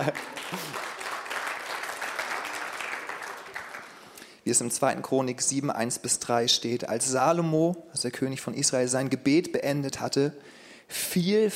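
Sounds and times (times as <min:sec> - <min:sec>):
speech: 0:00.0 - 0:00.7, 0:04.5 - 0:11.5
audience applause: 0:00.0 - 0:04.1.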